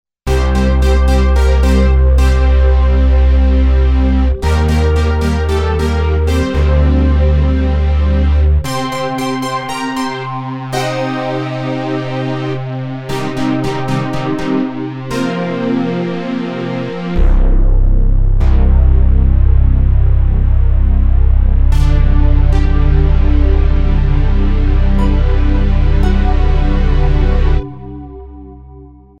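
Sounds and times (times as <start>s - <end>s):
80s analogue synthesizers: 0.3s - 29.1s.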